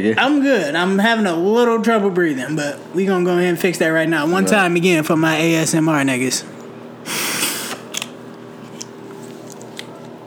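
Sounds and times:
speech: 0.0 - 7.2
asthma inhaler puff spray hiss: 7.0 - 7.9.

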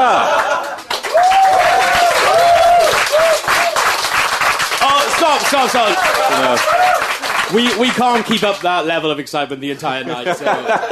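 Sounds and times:
laughter: 0.0 - 1.0, 4.9 - 6.9, 9.8 - 10.8
live audience whoops and cheers: 0.0 - 4.0, 5.8 - 7.2
live audience applause: 0.0 - 8.8
speech: 5.4 - 10.8.

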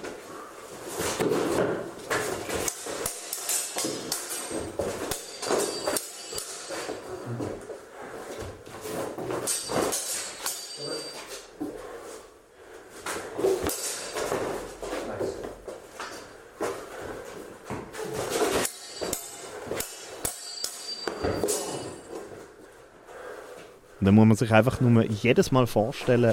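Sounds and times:
longswords clashing during sparring: 1.1 - 7.5, 9.1 - 11.5, 13.5 - 14.6, 17.9 - 22.3
speech: 24.1 - 26.3.

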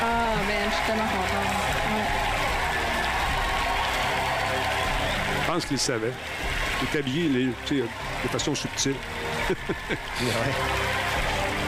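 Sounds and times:
studio audience applause: 0.0 - 11.6
speech: 5.6 - 11.0
laughter: 9.3 - 10.7.

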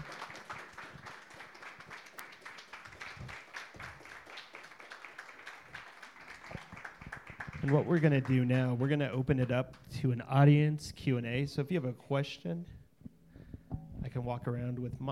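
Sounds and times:
audience applause: 0.0 - 8.8
speech: 7.6 - 12.8, 14.2 - 15.0.

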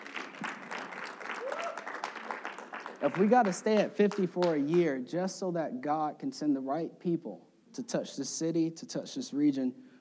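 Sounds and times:
audience clapping: 0.0 - 5.0
speech: 3.0 - 9.9.

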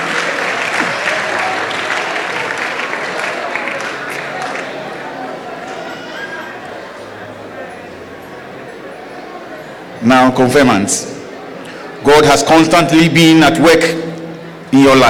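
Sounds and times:
audience applause: 0.0 - 6.4
speech: 10.1 - 11.2, 12.0 - 14.0, 14.7 - 15.0.

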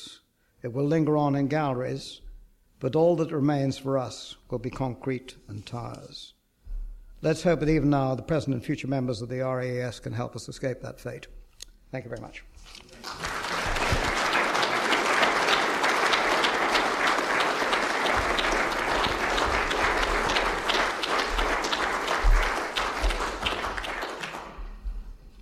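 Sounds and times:
speech: 0.6 - 2.2, 2.8 - 6.4, 7.2 - 13.2
audience applause after a lecture: 12.9 - 24.8.

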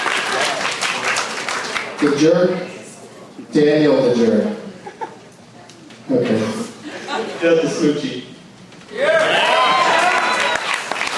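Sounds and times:
audience applause: 0.0 - 2.1, 9.0 - 11.1
speech: 2.0 - 2.7, 3.5 - 4.6, 6.1 - 6.6, 7.4 - 8.2.

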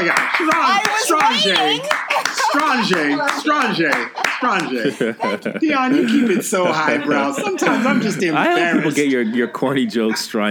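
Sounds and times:
hand clapping: 0.0 - 5.0
laughter: 0.0 - 10.4
speech: 0.0 - 10.4.

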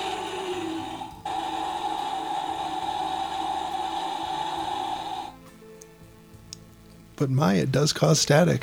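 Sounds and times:
humidifier running: 0.0 - 5.8
speech: 7.2 - 8.6.

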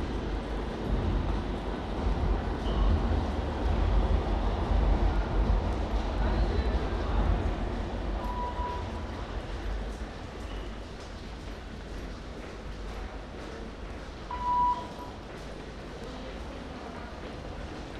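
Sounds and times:
Rotterdam metro train rumbling and rattling: 0.0 - 17.9
brief tone: 8.2 - 9.0, 14.3 - 15.1.

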